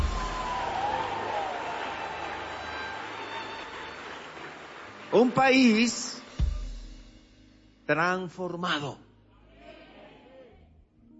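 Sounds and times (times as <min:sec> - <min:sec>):
audience applauding: 0:00.0 - 0:06.3
speech: 0:05.1 - 0:06.2, 0:07.9 - 0:09.0.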